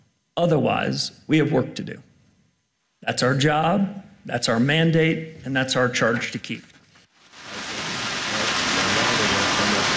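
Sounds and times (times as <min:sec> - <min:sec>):
speech: 0:00.4 - 0:02.1, 0:03.1 - 0:06.7
rain falling outdoors: 0:07.2 - 0:09.9.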